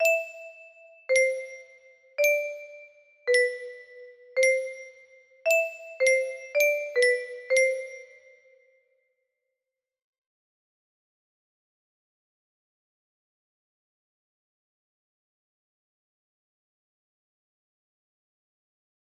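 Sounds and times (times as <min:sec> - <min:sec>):
jingle: 0:00.0 - 0:08.6.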